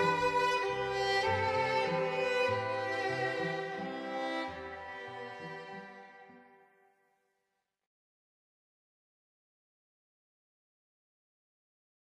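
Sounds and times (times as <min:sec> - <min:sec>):
strings: 0:00.0 - 0:06.9.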